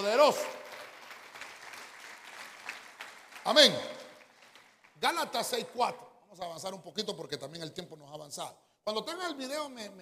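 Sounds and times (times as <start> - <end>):
audience clapping: 0.0 - 5.7
speech: 0.1 - 0.6, 3.4 - 4.0, 5.0 - 9.9.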